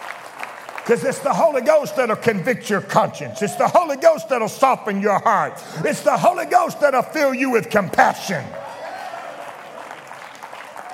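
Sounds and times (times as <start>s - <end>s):
many hands clapping in a church: 0.0s - 1.8s, 9.3s - 10.9s
speech: 0.9s - 8.7s.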